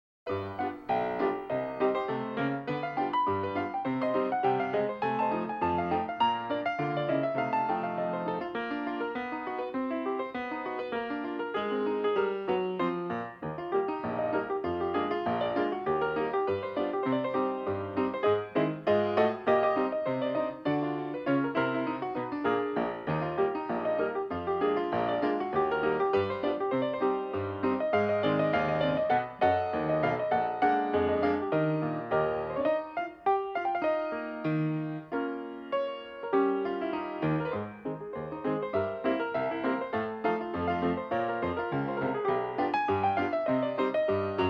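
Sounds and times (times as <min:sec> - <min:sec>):
piano on a boat: 0:00.3 - 0:44.4.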